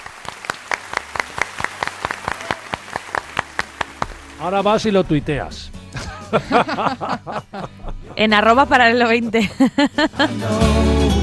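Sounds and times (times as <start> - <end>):
applause: 0.0 - 4.9
speech: 4.4 - 5.7, 6.3 - 10.8
laughter: 5.9 - 10.6.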